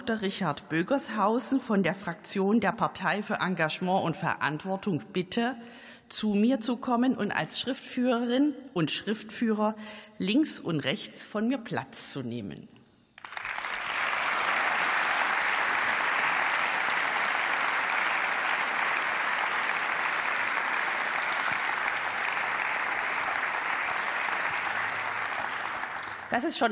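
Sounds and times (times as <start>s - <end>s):
speech: 0.0s - 12.8s, 26.4s - 26.6s
parliament applauding: 13.2s - 26.6s.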